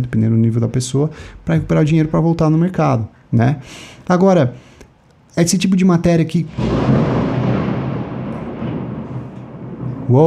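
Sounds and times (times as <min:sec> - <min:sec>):
speech: 0:00.0 - 0:04.7, 0:05.3 - 0:07.2
thunder from a lightning strike: 0:06.4 - 0:10.2.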